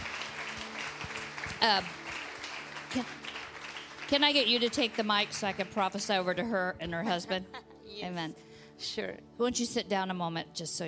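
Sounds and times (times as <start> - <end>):
audience hand clapping: 0.0 - 5.9
speech: 1.6 - 2.0, 2.9 - 3.2, 4.1 - 10.8.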